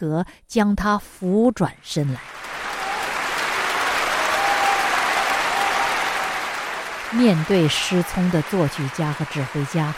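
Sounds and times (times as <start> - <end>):
speech: 0.0 - 2.5, 7.1 - 9.9
large audience applause in concert hall: 2.2 - 9.9
faint cheering or whistling: 2.4 - 9.9.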